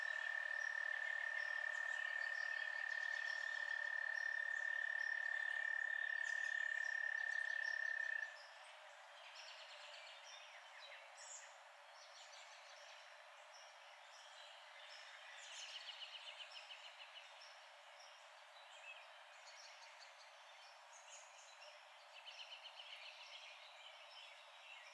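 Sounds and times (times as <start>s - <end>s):
night frog chorus holding a steady high tone: 0.0s - 8.4s.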